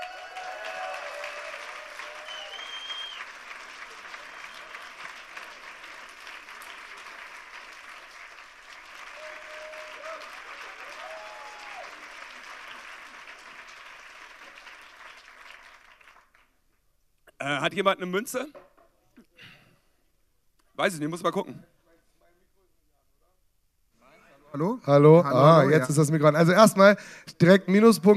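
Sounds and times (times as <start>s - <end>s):
audience applause: 0.0s - 16.6s
speech: 17.4s - 18.6s, 20.8s - 21.7s, 24.6s - 28.1s.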